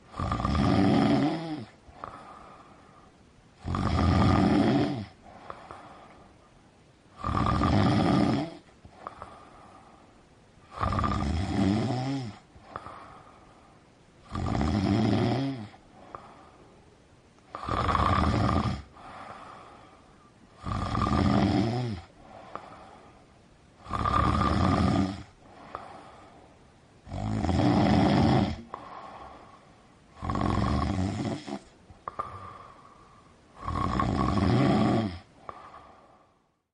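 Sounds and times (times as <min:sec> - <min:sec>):
snoring: 0:00.1 - 0:02.6, 0:03.6 - 0:06.0, 0:07.2 - 0:09.6, 0:10.7 - 0:13.3, 0:14.2 - 0:16.4, 0:17.5 - 0:19.8, 0:20.6 - 0:23.0, 0:23.8 - 0:26.2, 0:27.0 - 0:36.4.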